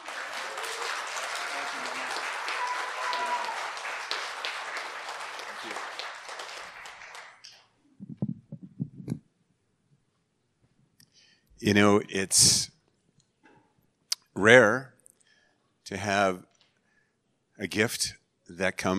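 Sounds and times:
audience applause: 0.0 - 7.5
speech: 11.6 - 12.7, 14.4 - 14.9, 15.9 - 16.4, 17.6 - 18.9.

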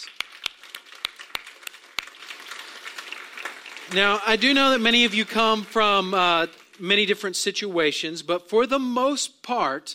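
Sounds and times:
audience round of applause: 0.0 - 6.7
speech: 3.9 - 9.9.

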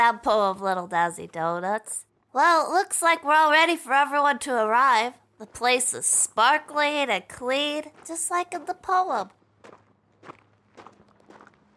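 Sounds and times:
speech: 0.0 - 9.4
footsteps of people arriving at a club: 7.5 - 11.7.

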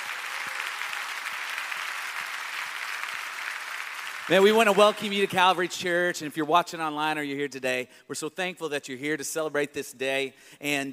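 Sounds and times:
church congregation applauding the dads: 0.0 - 6.3
speech: 4.3 - 10.9.

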